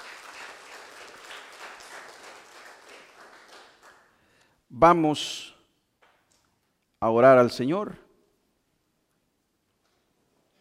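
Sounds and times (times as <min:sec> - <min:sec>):
audience applause: 0:00.0 - 0:04.2
speech: 0:04.7 - 0:05.5, 0:07.0 - 0:08.0.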